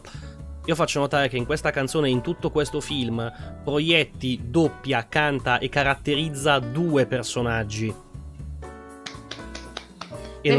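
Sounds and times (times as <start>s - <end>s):
music: 0.0s - 10.5s
speech: 0.7s - 8.0s
one person clapping hands: 8.9s - 10.5s.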